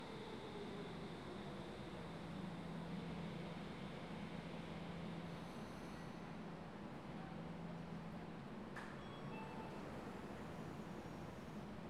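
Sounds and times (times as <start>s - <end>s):
metro train: 0.0s - 11.8s.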